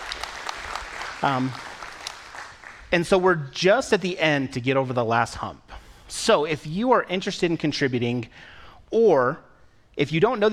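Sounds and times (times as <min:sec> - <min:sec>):
audience applause: 0:00.0 - 0:02.9
speech: 0:01.2 - 0:01.7, 0:02.9 - 0:10.5.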